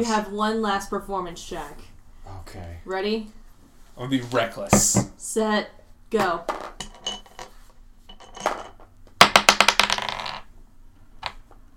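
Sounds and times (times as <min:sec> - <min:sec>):
speech: 0:00.0 - 0:01.9, 0:02.5 - 0:03.4, 0:04.0 - 0:06.9
dice rolling: 0:06.4 - 0:10.5.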